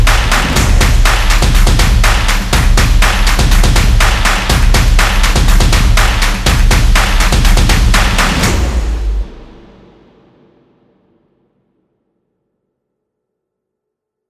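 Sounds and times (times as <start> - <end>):
stomps and claps: 0.0 - 9.4
energetic stomp and clap percussion music: 0.0 - 9.6.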